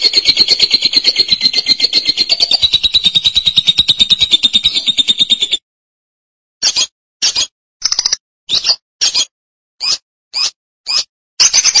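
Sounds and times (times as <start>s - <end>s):
lovebird chirping: 0.0s - 5.6s, 6.7s - 9.2s.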